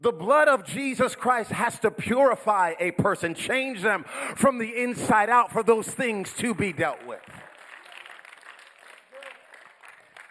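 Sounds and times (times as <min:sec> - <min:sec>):
speech: 0:00.0 - 0:07.5
audience clapping: 0:06.4 - 0:10.2.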